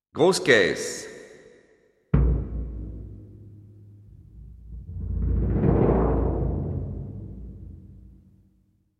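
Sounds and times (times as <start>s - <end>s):
bombo bass drum: 2.2s - 8.4s.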